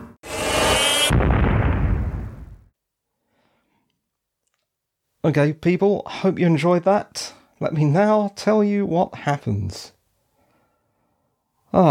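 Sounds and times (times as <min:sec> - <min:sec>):
bomb explosion in Doctor Who Earthshock: 0:01.0 - 0:02.7
speech: 0:05.2 - 0:10.0, 0:11.7 - 0:11.9.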